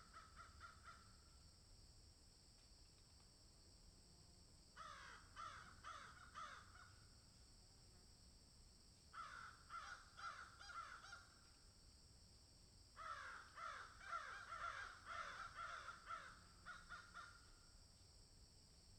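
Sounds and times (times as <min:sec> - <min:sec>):
several crows cawing in a field: 0:00.0 - 0:01.1, 0:04.8 - 0:07.0, 0:09.2 - 0:11.4, 0:13.0 - 0:17.5.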